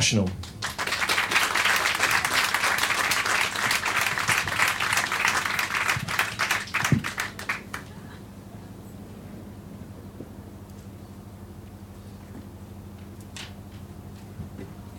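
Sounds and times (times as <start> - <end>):
audience applause welcoming a Glasgow band to the stage: 0.5 - 8.2.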